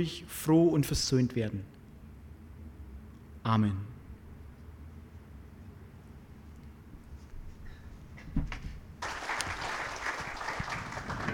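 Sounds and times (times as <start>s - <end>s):
speech: 0.0s - 1.8s, 3.4s - 3.9s
audience applause: 9.0s - 11.3s.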